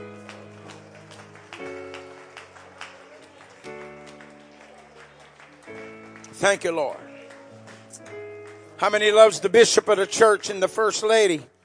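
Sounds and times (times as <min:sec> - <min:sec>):
sustained organ-like chords: 0:00.0 - 0:03.0, 0:03.6 - 0:04.8, 0:05.4 - 0:11.6
audience clapping: 0:00.0 - 0:10.8
speech: 0:06.4 - 0:07.0, 0:08.8 - 0:11.5.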